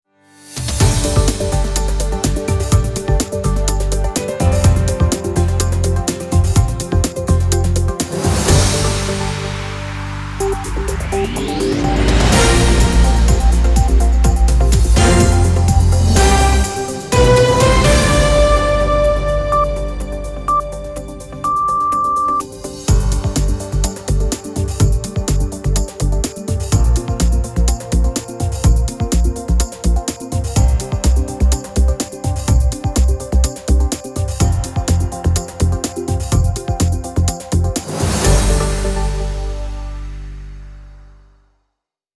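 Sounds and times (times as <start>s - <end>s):
news teaser music: 0.6s - 41.2s.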